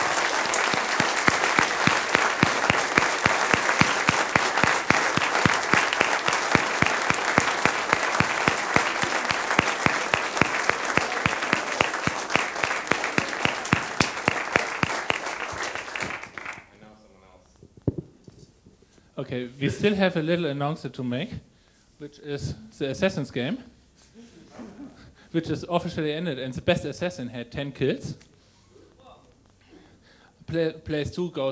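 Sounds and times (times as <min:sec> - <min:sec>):
audience applause: 0:00.0 - 0:16.7
speech: 0:19.3 - 0:23.7, 0:25.3 - 0:28.3, 0:30.5 - 0:31.5.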